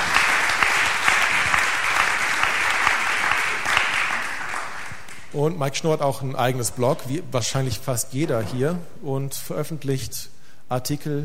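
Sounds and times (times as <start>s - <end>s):
audience applause: 0.0s - 5.4s
speech: 5.4s - 11.2s.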